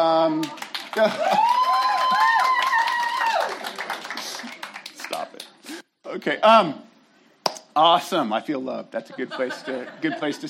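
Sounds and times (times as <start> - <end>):
speech: 0.2 - 1.6, 6.1 - 6.9, 7.8 - 10.4
audience clapping: 0.3 - 5.6
person whooping or whistling: 1.0 - 3.6
laughter: 9.0 - 10.4.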